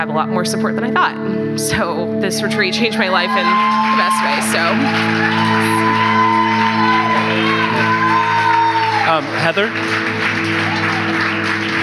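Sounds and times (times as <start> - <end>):
speech: 0.0 - 6.2, 9.1 - 10.8
audience applause: 2.9 - 11.8.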